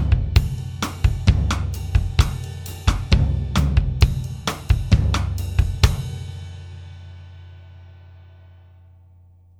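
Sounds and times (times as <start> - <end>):
bossa nova drum track: 0.0 - 6.5.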